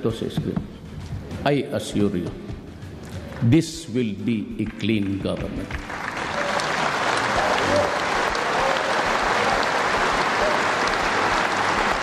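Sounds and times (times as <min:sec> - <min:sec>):
speech: 0:00.0 - 0:00.8, 0:01.4 - 0:02.5, 0:03.4 - 0:06.0, 0:07.7 - 0:08.1
applause in the session hall of the Batasan Pambansa: 0:04.6 - 0:12.0.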